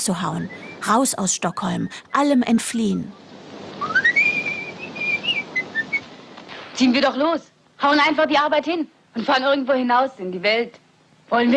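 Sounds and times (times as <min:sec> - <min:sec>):
speech: 0:00.0 - 0:04.0, 0:06.8 - 0:11.5
man whistling cheerfully while walking away: 0:03.8 - 0:06.0.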